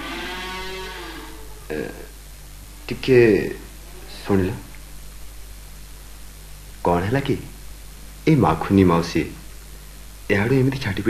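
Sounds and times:
bullocks mooing while being fed straw: 0:00.0 - 0:01.9
short noisy burst: 0:00.0 - 0:08.2
speech: 0:01.7 - 0:02.1, 0:02.9 - 0:03.6, 0:04.2 - 0:04.7, 0:06.8 - 0:07.5, 0:08.2 - 0:09.4, 0:10.3 - 0:11.0.

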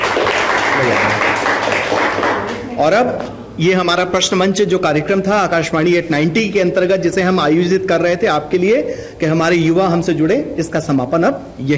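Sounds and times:
audience applause at a youth radio quiz event: 0:00.0 - 0:02.7
speech: 0:02.8 - 0:11.7.

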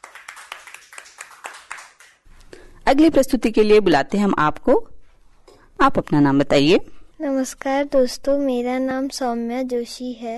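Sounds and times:
audience clapping: 0:00.0 - 0:02.3
speech: 0:02.9 - 0:04.9, 0:05.8 - 0:10.3.

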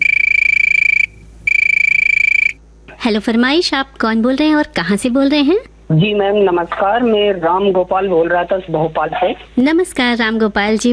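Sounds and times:
telephone ringing: 0:00.0 - 0:02.6
speech: 0:02.9 - 0:10.9.

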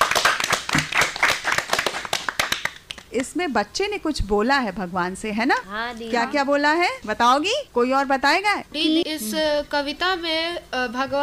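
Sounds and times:
children clapping loudly: 0:00.0 - 0:03.2
speech: 0:03.1 - 0:11.2.

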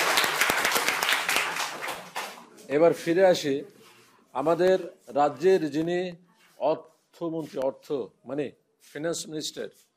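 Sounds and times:
audience applause for a correct quiz answer: 0:00.0 - 0:02.4
speech: 0:02.7 - 0:03.8, 0:04.4 - 0:09.9.

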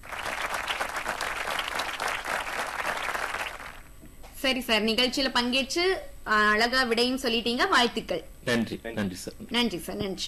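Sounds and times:
applause for a quiz contestant's correct answer: 0:00.0 - 0:03.9
speech: 0:04.4 - 0:10.2.

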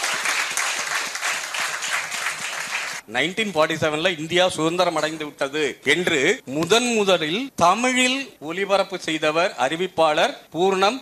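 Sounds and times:
audience clapping: 0:00.0 - 0:03.0
speech: 0:03.1 - 0:11.0.

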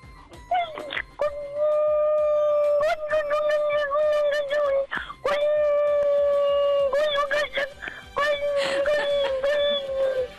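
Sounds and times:
voice imitating a mosquito's whine: 0:00.5 - 0:10.3
laughter: 0:07.1 - 0:10.3.

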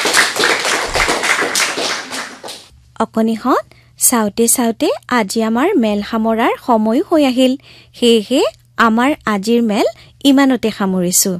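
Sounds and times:
children clapping hands: 0:00.0 - 0:02.7
speech: 0:03.0 - 0:11.3.

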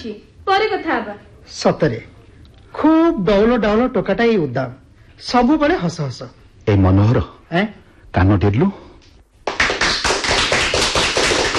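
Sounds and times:
speech: 0:00.0 - 0:02.1, 0:02.7 - 0:08.8
group of people clapping repeatedly: 0:09.4 - 0:11.5.

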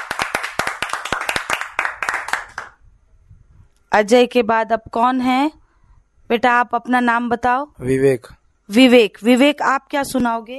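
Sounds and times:
children clapping: 0:00.0 - 0:02.8
speech: 0:03.9 - 0:05.6, 0:06.3 - 0:10.5.

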